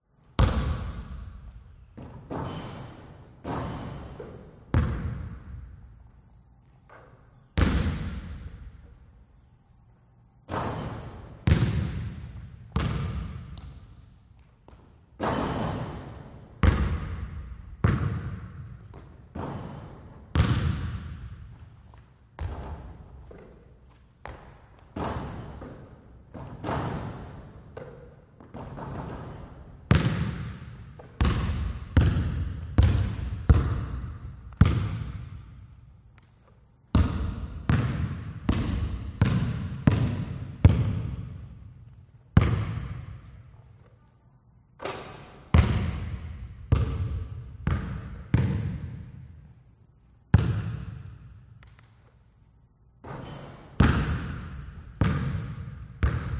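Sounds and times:
basketball bouncing in empty school gymnasium: 0.3 - 5.8, 6.6 - 8.9, 10.4 - 43.4, 44.8 - 49.4, 50.3 - 52.2, 53.0 - 56.3
basketball shot in empty school gymnasium: 0.4 - 1.3, 2.0 - 5.6, 6.9 - 8.7, 10.5 - 13.8, 15.2 - 21.4, 24.2 - 35.6, 36.9 - 41.4, 42.4 - 43.2, 44.8 - 49.2, 50.3 - 51.3, 53.0 - 56.3.

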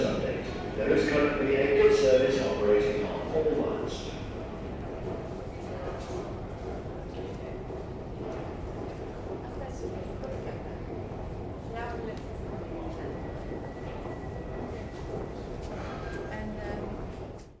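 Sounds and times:
people chatting in a London Underground station: 0.0 - 4.3, 9.4 - 10.9, 11.7 - 13.4, 16.2 - 17.1
London Underground trains arriving and departing: 0.0 - 17.5.

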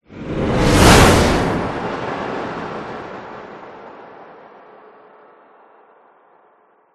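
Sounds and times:
whoosh: 0.0 - 3.3.

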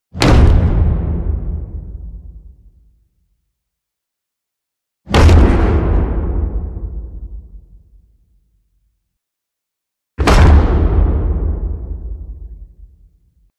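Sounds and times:
cinematic wood impact hit: 0.2 - 2.2, 5.1 - 7.6, 10.2 - 12.7.

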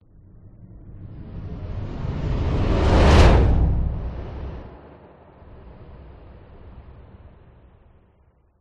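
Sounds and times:
whoosh: 0.9 - 8.2.

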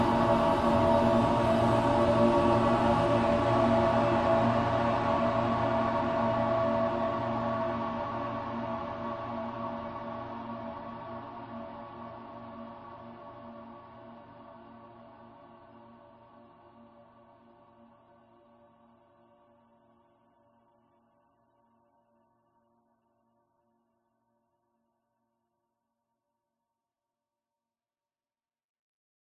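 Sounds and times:
dark reverberant horror drone: 0.0 - 10.6.

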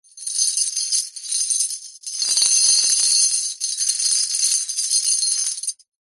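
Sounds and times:
small industrial chain dragged and laid down on concrete: 0.1 - 5.8.

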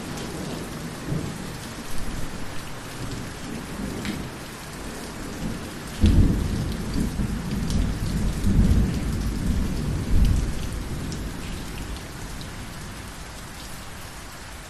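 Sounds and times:
rain: 0.0 - 14.6
drips on porch: 1.4 - 14.2
large thunder rumble: 5.5 - 11.6.

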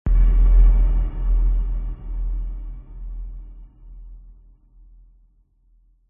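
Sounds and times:
dark cinematic hit with sub bass: 0.1 - 4.5.

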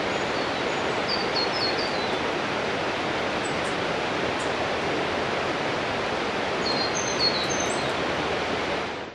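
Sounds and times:
winter birds calling: 0.0 - 2.4, 6.5 - 8.0
rainforest waterfall on a winter evening: 0.0 - 9.1.

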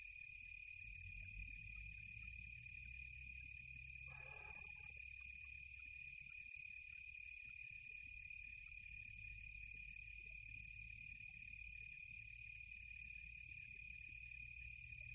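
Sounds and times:
crickets chirping: 0.0 - 15.1.

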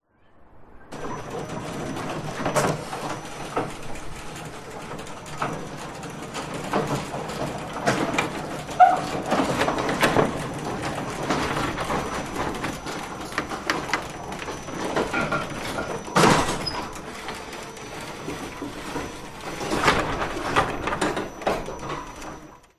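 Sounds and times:
household electric wooden garage door closing with rattle and whir: 0.9 - 22.7.

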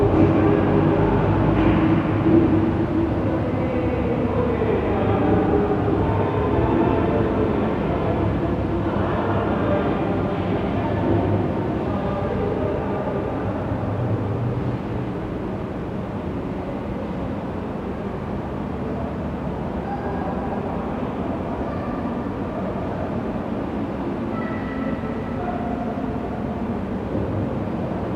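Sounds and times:
church ambience: 0.0 - 28.1.

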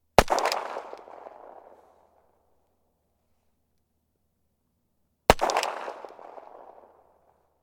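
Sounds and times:
1911 pistol gunshot: 0.2 - 2.1, 5.3 - 7.0.

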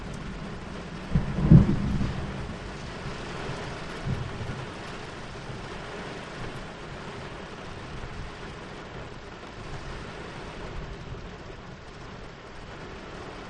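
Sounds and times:
distant thunder heard from in a car: 0.0 - 8.4
rain storm heard from in a car: 0.0 - 13.4.

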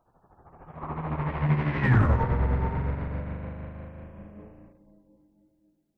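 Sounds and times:
science fiction hovering vehicle passing by fast: 0.6 - 4.7.

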